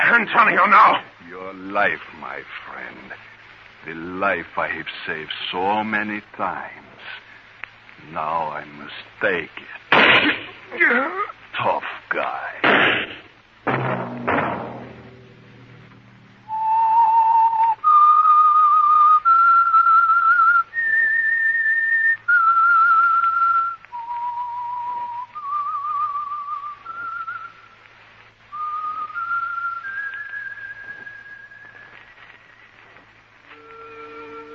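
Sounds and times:
speech: 0.1s - 7.2s, 8.0s - 13.9s
sharp thumps: 9.9s - 10.6s, 12.6s - 16.4s
lone whistled theme melody as radio program signal: 16.5s - 27.7s, 28.6s - 32.0s, 33.5s - 34.5s.

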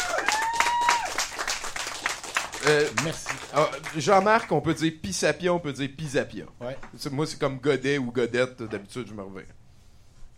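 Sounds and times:
audience applauding a guest at a live event: 0.0s - 4.6s
speech: 2.6s - 9.6s.

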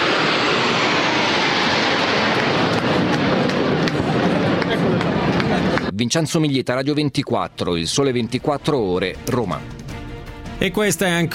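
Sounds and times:
Frecce Tricolori aerobatic jets flying past in Rome: 0.0s - 5.9s
speech: 6.0s - 9.8s, 10.6s - 11.3s.

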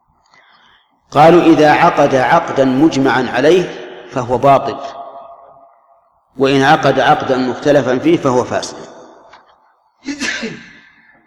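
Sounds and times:
speech: 1.1s - 5.0s, 6.4s - 8.9s
sneeze: 10.0s - 10.9s.

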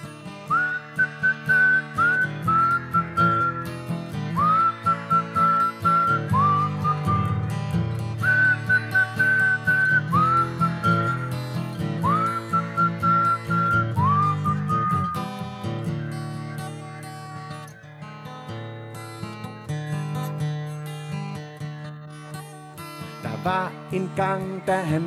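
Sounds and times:
lower instrumental backing music: 0.0s - 25.0s
person whistling a bright cheerful melody: 0.4s - 17.9s
speech: 24.2s - 25.0s.

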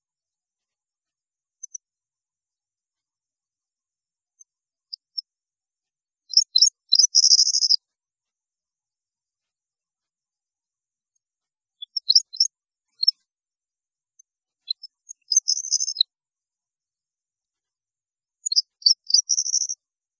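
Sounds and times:
European goldfinch singing: 6.3s - 7.8s, 14.7s - 16.0s, 18.5s - 19.8s.

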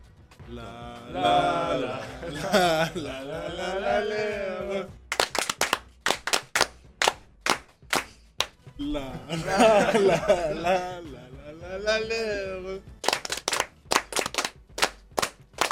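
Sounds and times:
voices chanting and laughing: 0.6s - 5.1s, 9.0s - 11.6s
rhythmic group clapping in a radio studio: 1.2s - 8.7s, 12.9s - 15.7s.

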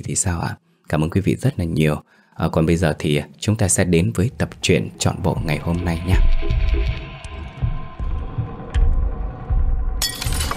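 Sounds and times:
speech: 0.0s - 7.0s
low throbbing rumble: 4.5s - 10.0s
precious bowl shattering: 10.0s - 10.5s.

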